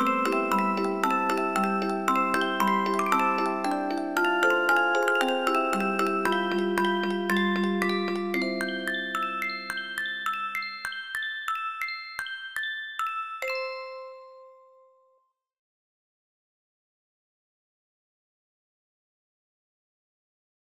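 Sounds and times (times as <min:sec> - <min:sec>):
Christmas song: 0:00.0 - 0:15.2.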